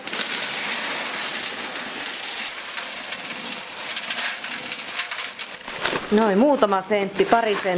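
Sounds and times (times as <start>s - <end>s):
gravel poured into bottom of plant pot: 0.0s - 6.2s
speech: 6.1s - 7.7s.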